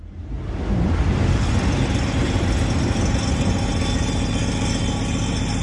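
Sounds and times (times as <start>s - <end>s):
train rushing past in the art installation Heppernder Tisch: 0.0s - 5.5s.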